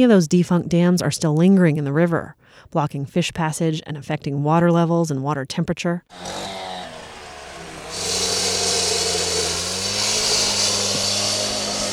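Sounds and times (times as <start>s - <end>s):
speech: 0.0s - 6.8s
heavy machinery diesel engine drone: 6.1s - 11.9s
heavy machinery hammering away at concrete dam: 6.1s - 11.9s.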